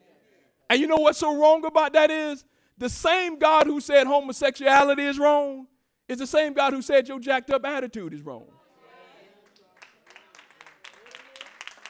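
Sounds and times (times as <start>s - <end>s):
speech: 0.7s - 8.6s
hand claps: 9.5s - 11.8s.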